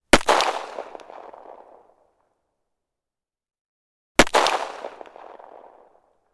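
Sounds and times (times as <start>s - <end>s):
1911 pistol gunshot: 0.1s - 1.9s, 4.2s - 6.1s.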